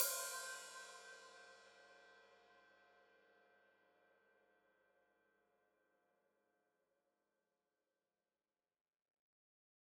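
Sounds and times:
open hi-hat: 0.0 - 1.2.

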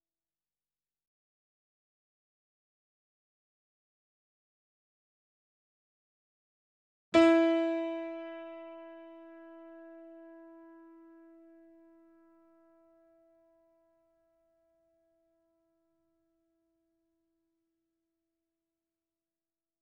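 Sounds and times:
C4 E4 A4 notes on grand piano and digital piano: 7.2 - 11.8.

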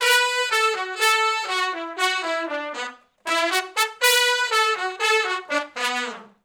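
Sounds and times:
horns playing R&B riff in unison: 0.0 - 6.4.

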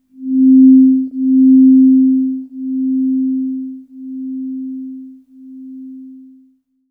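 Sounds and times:
synth line in C3: 0.2 - 5.0.

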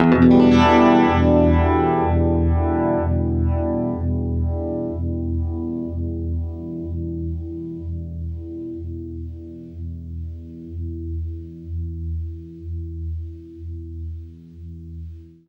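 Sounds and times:
guitar E minor seventh chord through Univibe: 0.0 - 12.2.

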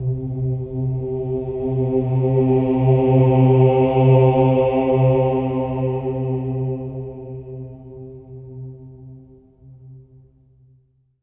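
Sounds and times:
choir singing oh at C3: 0.1 - 8.0.

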